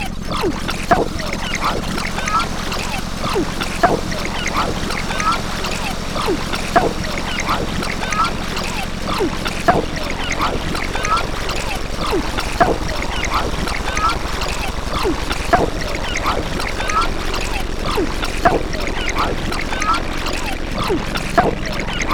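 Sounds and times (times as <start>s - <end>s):
splashy synth: 0.0s - 22.1s.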